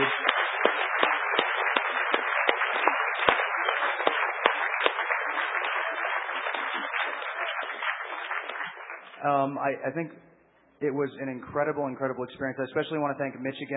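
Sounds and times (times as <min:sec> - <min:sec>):
audience round of applause: 0:00.0 - 0:09.2
speech: 0:09.2 - 0:13.7.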